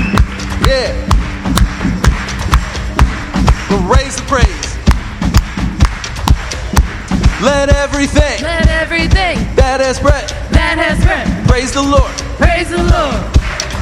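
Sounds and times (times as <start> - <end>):
hands clapping: 0.0 - 8.6, 11.7 - 13.8
speech: 3.7 - 4.6, 7.4 - 13.4.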